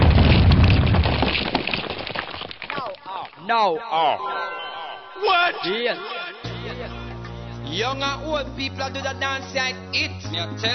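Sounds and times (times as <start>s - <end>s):
nuclear warhead explosion: 0.0s - 2.4s
crackling debris: 0.0s - 3.4s
speech: 3.5s - 4.5s, 5.2s - 6.2s, 7.7s - 10.7s
laughter: 5.2s - 8.2s.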